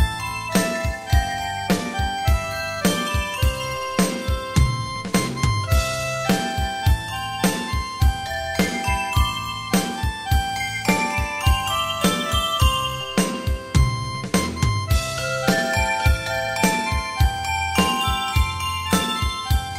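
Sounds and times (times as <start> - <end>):
beat music: 0.0 - 19.7.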